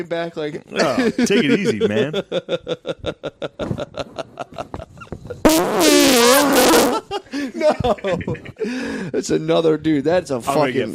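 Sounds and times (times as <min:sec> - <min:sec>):
speech: 0:00.0 - 0:04.7, 0:07.4 - 0:10.9
laughter: 0:00.8 - 0:05.1, 0:06.7 - 0:08.8
fart: 0:05.4 - 0:07.0.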